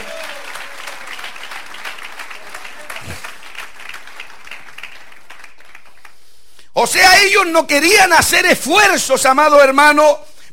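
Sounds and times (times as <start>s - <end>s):
audience applause: 0.0s - 6.2s
speech: 6.8s - 10.3s.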